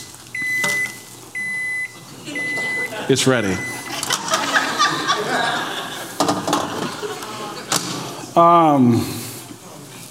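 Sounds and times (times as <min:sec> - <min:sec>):
microwave oven beeping: 0:00.0 - 0:05.7
laughter: 0:02.0 - 0:08.4
speech: 0:03.1 - 0:03.8, 0:08.4 - 0:09.2.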